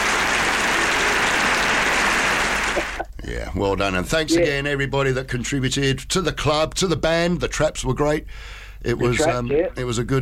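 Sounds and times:
audience applause: 0.0 - 3.0
speech: 3.3 - 10.2.

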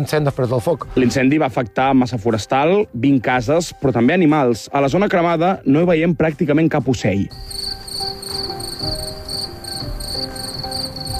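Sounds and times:
speech: 0.0 - 9.0
crickets chirping in burned forest: 7.3 - 11.1.

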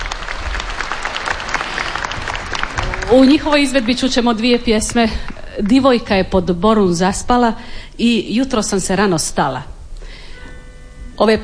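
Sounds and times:
audience applause for a women's klapa choir from Zadar at a final concert: 0.0 - 5.8
speech: 3.1 - 9.7, 11.2 - 11.4.

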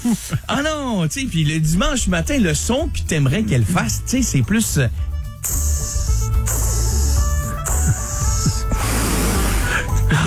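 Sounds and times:
speech: 0.0 - 5.8
voice imitating bacon sizzling in a pan: 5.4 - 9.8.

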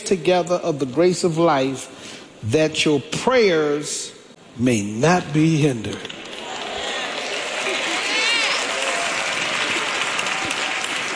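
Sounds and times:
speech: 0.0 - 6.2
audience clapping: 6.0 - 11.1.

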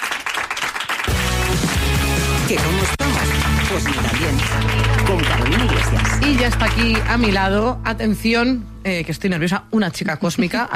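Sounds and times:
audience applause: 0.0 - 7.4
speech: 2.5 - 10.7.

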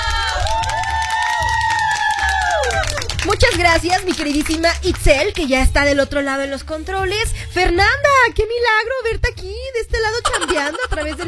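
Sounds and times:
audience cheering: 0.0 - 3.2
audience applause: 0.0 - 4.4
speech: 3.7 - 11.2
laughter: 10.2 - 11.2.

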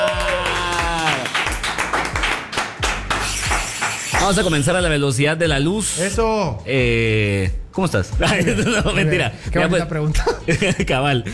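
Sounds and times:
studio applause: 0.0 - 4.4
speech: 4.3 - 11.3
laughter: 8.2 - 11.3.

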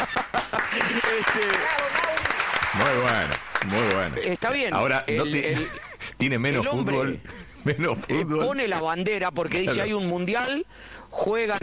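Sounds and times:
laughter: 0.0 - 2.1, 5.2 - 8.8
applause: 0.3 - 4.4
speech: 1.2 - 2.0, 2.8 - 11.6.

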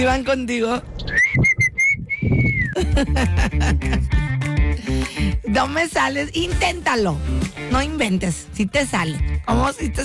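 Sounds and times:
speech: 0.0 - 1.2, 2.2 - 10.0
parent's special call whistle to summon children: 1.1 - 2.8
laughter: 2.8 - 4.2.

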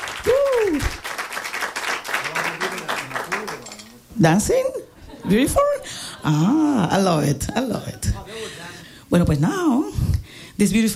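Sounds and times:
crowd applause: 0.0 - 3.8
loud whoop: 0.2 - 1.0
speech: 4.2 - 8.2, 9.1 - 10.0, 10.6 - 10.9.

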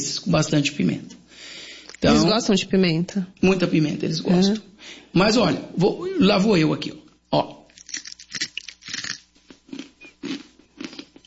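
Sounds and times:
speech: 0.0 - 1.2, 2.0 - 7.6
crunchy fried insect snack being chewed: 7.7 - 11.2.

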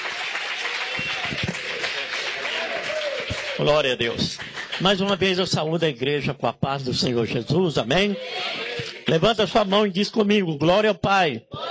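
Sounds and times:
audience applause: 0.0 - 5.4
speech: 3.6 - 11.6.

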